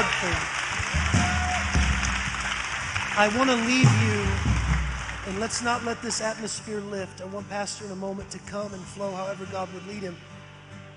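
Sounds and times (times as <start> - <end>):
crowd clapping: 0.0 - 6.8
speech: 3.2 - 4.6, 5.3 - 10.3.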